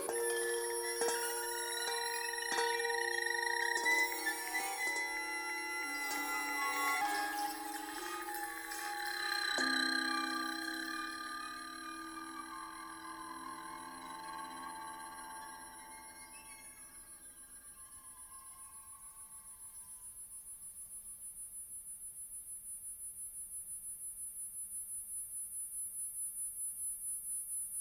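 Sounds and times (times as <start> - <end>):
oscillating vibrato tone: 0.0 - 19.2.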